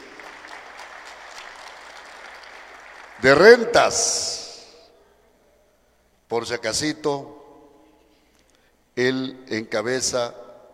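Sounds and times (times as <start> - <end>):
audience applauding at a municipal gathering honouring a manager: 0.0 - 3.6
speech: 3.2 - 4.4, 6.3 - 7.4, 9.0 - 10.4.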